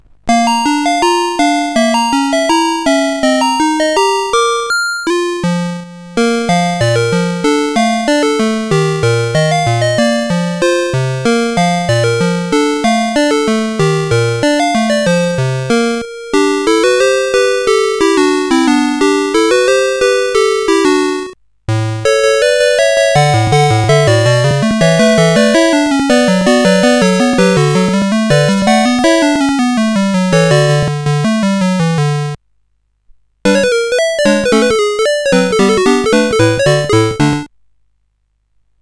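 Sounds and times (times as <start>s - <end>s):
music box melody on SID CSG8580R5 chip: 0.3s - 32.4s, 33.5s - 37.5s.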